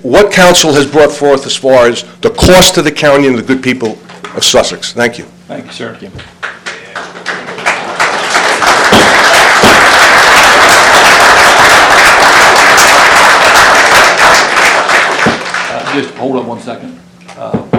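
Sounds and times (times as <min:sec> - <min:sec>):
speech: 0:00.0 - 0:06.4, 0:16.0 - 0:17.7
audience applause: 0:06.4 - 0:16.2.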